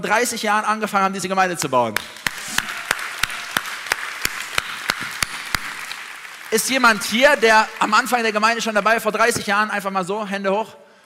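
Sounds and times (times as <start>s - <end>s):
speech: 0.0s - 2.7s, 6.6s - 10.8s
audience applause: 2.0s - 9.1s.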